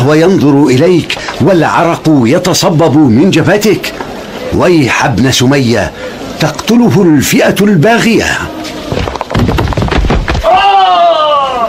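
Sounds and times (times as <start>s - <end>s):
speech: 0.0s - 8.8s
wall collapsing: 8.9s - 11.2s.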